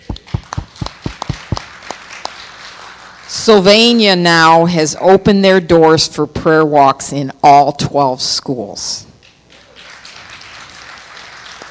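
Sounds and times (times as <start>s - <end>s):
audience clapping: 0.0s - 3.6s, 9.2s - 11.6s
speech: 3.4s - 9.1s.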